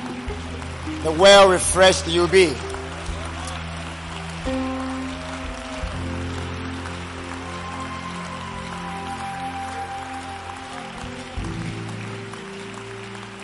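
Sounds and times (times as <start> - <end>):
audience clapping loudly: 0.0 - 13.4
low musical tones: 0.0 - 13.4
speech: 1.0 - 2.7.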